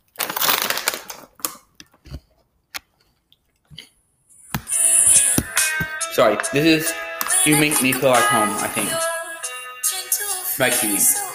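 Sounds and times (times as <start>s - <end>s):
crunching Kettle Brand sea salt and vinegar potato chips: 0.0s - 1.8s
speech: 6.2s - 9.1s, 10.6s - 11.3s.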